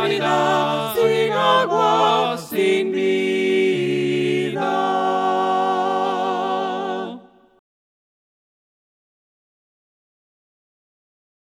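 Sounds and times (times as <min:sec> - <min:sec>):
voices singing hymns a cappella: 0:00.0 - 0:07.6.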